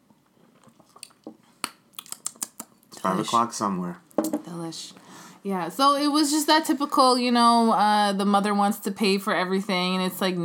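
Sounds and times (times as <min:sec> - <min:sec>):
wet sipping and swallowing of a drink: 0:00.5 - 0:03.0
speech: 0:03.0 - 0:04.0, 0:04.6 - 0:10.4.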